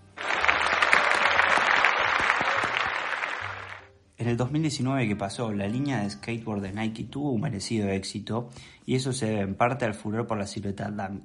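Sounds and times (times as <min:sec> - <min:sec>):
applause: 0:00.0 - 0:03.9
speech: 0:04.2 - 0:11.2.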